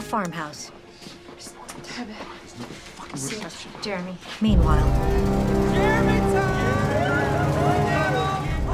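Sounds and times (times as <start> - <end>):
speech: 0.1 - 0.8, 1.4 - 6.8
truck engine rumbling as it arrives outside a house: 4.6 - 8.7.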